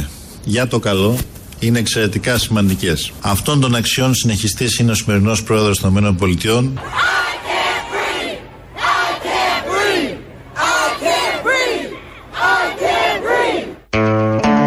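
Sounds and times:
speech: 0.5 - 7.1
large crowd chanting a protest slogan: 6.8 - 13.9.

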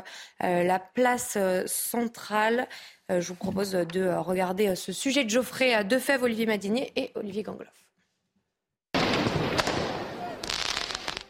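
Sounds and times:
speech: 0.0 - 7.9
firework mortars and firecrackers exploding: 9.0 - 11.2
constant roar of crowd noise: 9.9 - 11.2.

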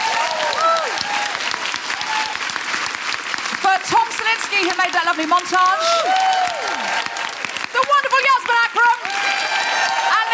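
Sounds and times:
whoops and cheers: 0.0 - 2.6, 5.6 - 7.4, 8.9 - 10.3
audience applause: 0.0 - 10.3
speech: 4.6 - 6.9.

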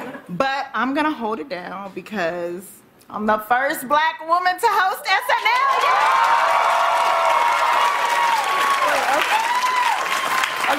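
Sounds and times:
speech: 0.3 - 6.8
crowd applauding: 5.4 - 10.7.

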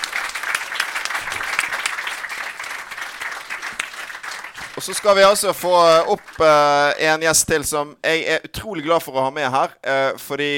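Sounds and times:
audience applause: 0.0 - 6.8
speech: 4.8 - 10.5.

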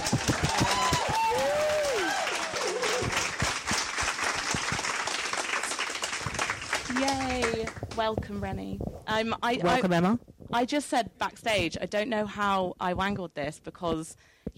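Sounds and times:
people whooping and cheering: 0.0 - 3.6
crowd applauding: 0.0 - 8.0
speech: 8.0 - 14.5.

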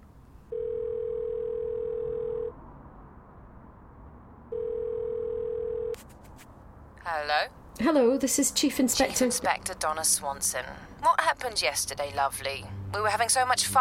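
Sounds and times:
outgoing phone call ringback tone: 0.5 - 2.5, 4.5 - 6.0
speech: 7.1 - 13.7.

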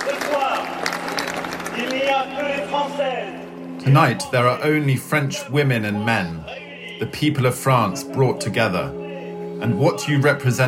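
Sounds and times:
crowd cheering at a rally: 0.0 - 3.4
speech: 2.2 - 9.0, 9.6 - 10.6.

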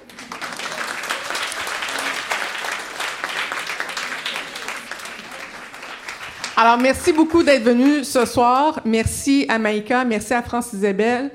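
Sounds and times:
audience applause: 0.0 - 8.0
speech: 6.6 - 11.3.

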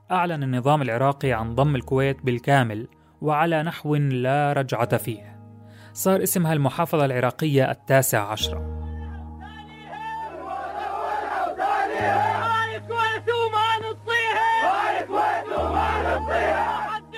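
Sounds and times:
speech: 0.1 - 5.3, 6.0 - 8.8
large group of men chanting battle cries in unison: 9.8 - 17.1.

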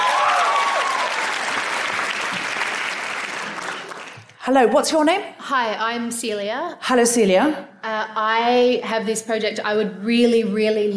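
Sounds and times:
rising whistle or cheer: 0.0 - 1.4
crowd round of applause: 0.0 - 4.4
speech: 4.4 - 10.9.

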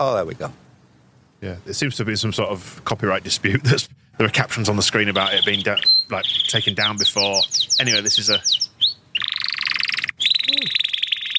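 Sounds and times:
speech: 0.0 - 0.6, 1.4 - 8.6
canary singing: 4.6 - 11.3.

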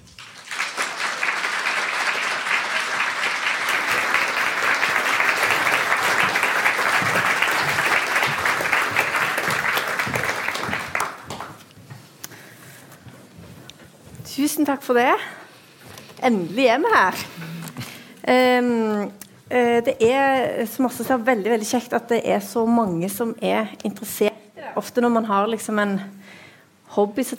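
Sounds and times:
warm applause: 0.0 - 11.7
speech: 14.6 - 15.4, 16.2 - 17.3, 18.3 - 27.3.

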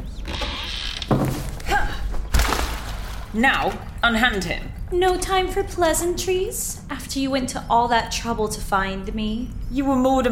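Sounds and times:
hatch opened upwards with mechanical thunks and creaks: 0.2 - 2.3
speech: 3.3 - 10.2.

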